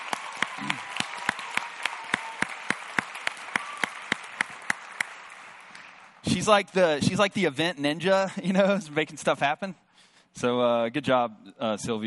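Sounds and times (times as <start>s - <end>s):
crisp evenly spaced claps: 0.0s - 6.2s
speech: 6.4s - 9.8s, 10.4s - 12.0s.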